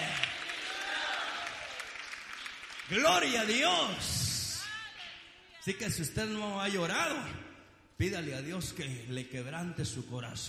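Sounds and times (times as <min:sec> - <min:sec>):
congregation applause during a church service: 0:00.0 - 0:04.6
speech: 0:02.9 - 0:04.2, 0:05.6 - 0:10.4.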